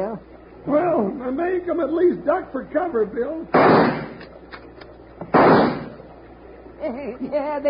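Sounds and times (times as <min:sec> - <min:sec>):
speech: 0:00.0 - 0:04.0, 0:06.8 - 0:07.6
rifle shot fired from a boat: 0:03.5 - 0:04.3, 0:05.3 - 0:06.0.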